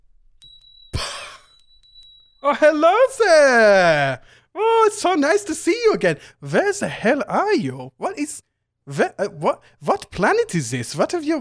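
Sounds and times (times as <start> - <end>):
tiny bell ringing: 0.4 - 3.6
speech: 2.4 - 11.3.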